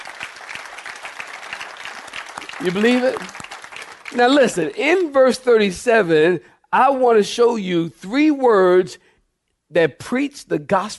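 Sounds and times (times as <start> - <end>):
audience clapping hands: 0.0 - 5.4
speech: 2.6 - 3.4, 4.1 - 9.1, 9.7 - 10.9.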